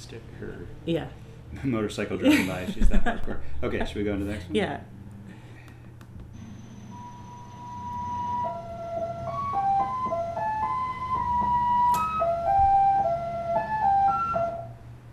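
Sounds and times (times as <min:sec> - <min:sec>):
speech: 0:00.0 - 0:05.0
laughter: 0:02.2 - 0:03.9
shortwave number station electronic melody: 0:07.0 - 0:14.7.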